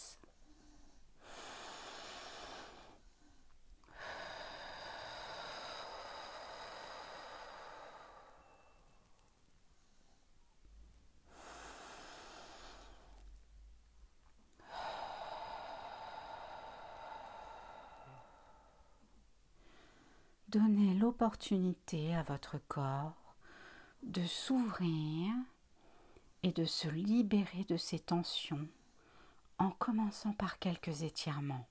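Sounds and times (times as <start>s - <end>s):
deep breathing in through the nose and out through the mouth: 0.2s - 13.3s, 14.5s - 20.5s, 23.4s - 24.0s, 25.7s - 26.4s, 28.8s - 29.5s
speech: 20.5s - 23.2s, 24.0s - 25.5s, 26.4s - 28.8s, 29.6s - 31.6s.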